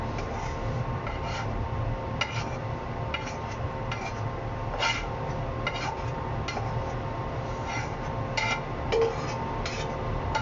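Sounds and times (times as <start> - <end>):
utensils scraping and clinking against the pan: 0.0 - 1.6, 2.2 - 10.4
chicken breast and vegetables stir-fried: 0.0 - 10.4.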